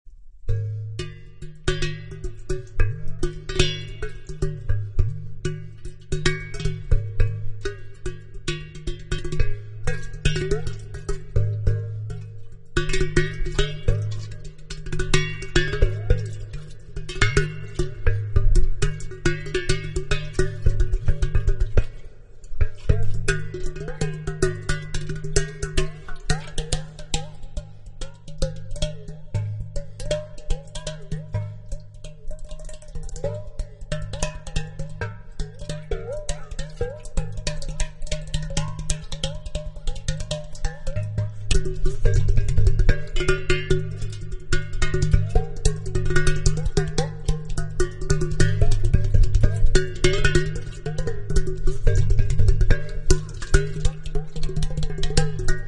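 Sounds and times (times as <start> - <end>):
water in a teapot: 1.3 - 55.6.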